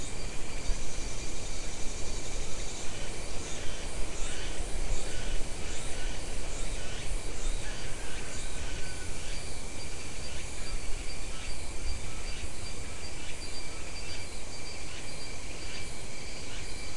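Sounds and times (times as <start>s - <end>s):
insects buzzing in chorus: 0.0s - 16.9s.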